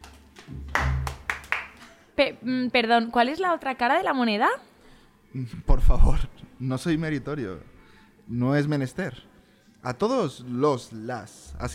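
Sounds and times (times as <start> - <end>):
scattered audience hand claps at an event about artificial intelligence: 0.0 - 2.0
speech: 2.2 - 4.7, 5.3 - 7.7, 8.3 - 11.7.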